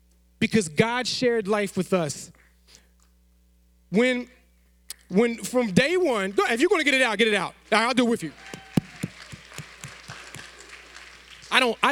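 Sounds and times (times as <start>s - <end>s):
speech: 0.4s - 2.8s, 3.9s - 4.4s, 5.1s - 8.6s, 11.5s - 11.8s
soft clapping from a church audience in a reverberant room: 8.4s - 11.8s.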